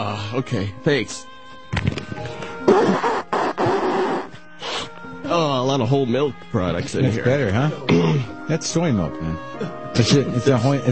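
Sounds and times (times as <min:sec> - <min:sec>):
speech: 0:00.2 - 0:02.0, 0:05.8 - 0:10.9
person blowing their nose: 0:02.6 - 0:05.0.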